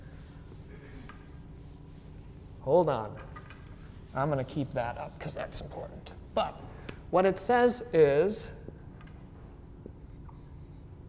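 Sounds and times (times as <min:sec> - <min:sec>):
eraser rubbing out writing: 0:00.0 - 0:05.6
speech: 0:02.6 - 0:03.4, 0:04.1 - 0:08.6.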